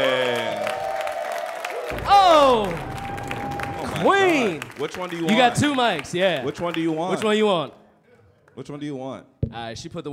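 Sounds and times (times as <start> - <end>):
audience applause: 0.0 - 7.4
speech: 1.9 - 2.9, 4.0 - 7.8, 8.6 - 10.1.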